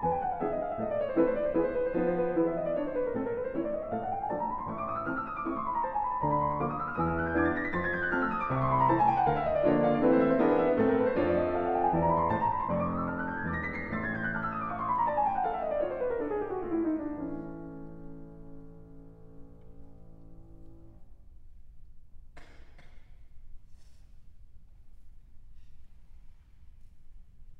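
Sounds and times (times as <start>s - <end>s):
piano etude in A minor: 0.0s - 21.4s.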